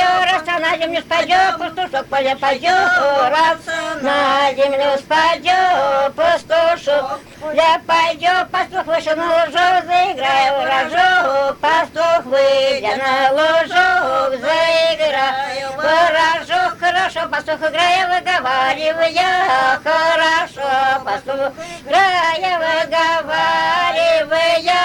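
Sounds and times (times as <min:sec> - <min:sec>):
wedding folk song singing from Pskov Oblast: 0:00.0 - 0:24.8.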